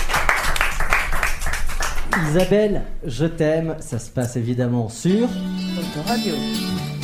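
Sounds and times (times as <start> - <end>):
audience clapping: 0.0 - 2.6
speech: 2.2 - 6.9.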